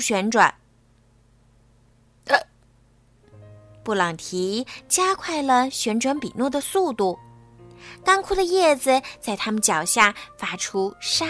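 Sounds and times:
speech: 0.0 - 0.6, 2.3 - 2.5, 3.9 - 11.2
hiccups: 2.2 - 2.6.

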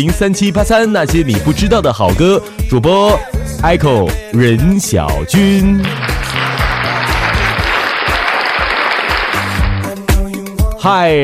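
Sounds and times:
speech: 0.0 - 6.5, 10.8 - 11.2
bouncy stepping bass line of music: 0.0 - 11.2
crowd applause welcoming the guest: 5.6 - 10.0.

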